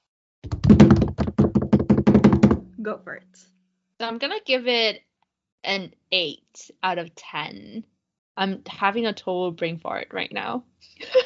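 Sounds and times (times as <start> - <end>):
drum roll tapped on a hard surface: 0.4 - 2.7
speech: 0.7 - 1.0, 2.8 - 11.2.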